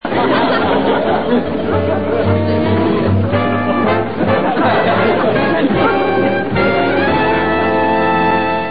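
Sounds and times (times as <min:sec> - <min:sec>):
laughter: 0:00.0 - 0:08.5
music: 0:00.1 - 0:08.7.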